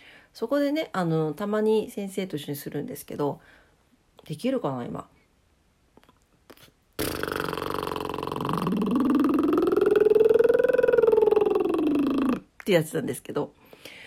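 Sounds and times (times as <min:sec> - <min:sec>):
speech: 0:00.4 - 0:03.6, 0:04.2 - 0:05.2, 0:12.7 - 0:14.0
lip roll vocal warm-up exercise: 0:06.0 - 0:12.8.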